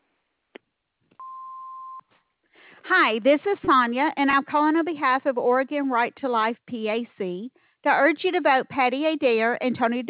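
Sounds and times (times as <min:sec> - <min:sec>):
voicemail tone on a telephone line: 0:01.2 - 0:02.1
speech: 0:02.9 - 0:10.0.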